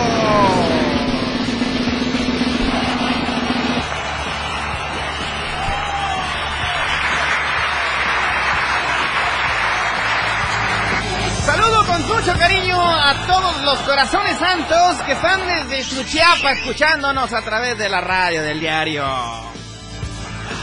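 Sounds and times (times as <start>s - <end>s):
loud applause: 0.0s - 20.6s
whistles and whoops: 2.8s - 7.4s, 12.8s - 17.3s
speech: 13.8s - 19.5s.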